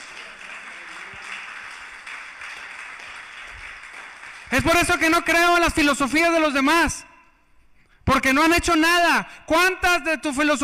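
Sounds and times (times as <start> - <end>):
audience clapping: 0.0 - 5.4
speech: 4.5 - 7.1, 8.1 - 10.6.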